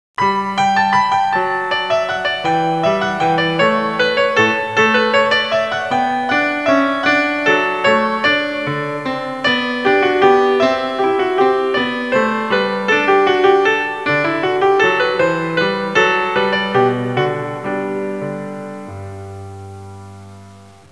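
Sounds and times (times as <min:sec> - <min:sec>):
classical music ringtones: 0:00.2 - 0:20.8.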